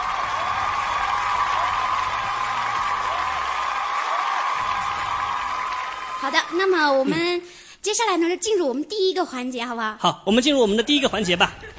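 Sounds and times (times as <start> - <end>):
applause: 0.0 - 6.7
speech: 6.2 - 11.7.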